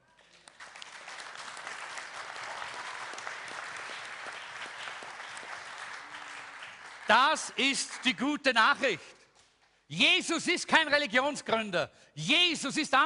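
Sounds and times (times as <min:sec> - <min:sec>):
audience applause: 0:00.2 - 0:08.3
speech: 0:07.1 - 0:09.2, 0:09.9 - 0:13.0.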